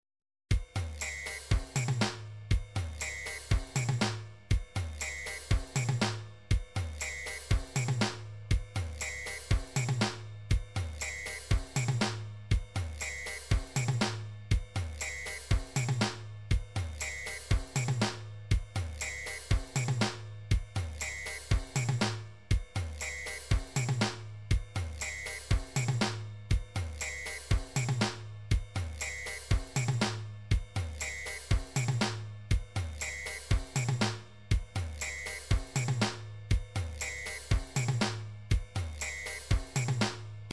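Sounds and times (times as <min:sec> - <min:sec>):
drum pattern: 0:00.5 - 0:40.5.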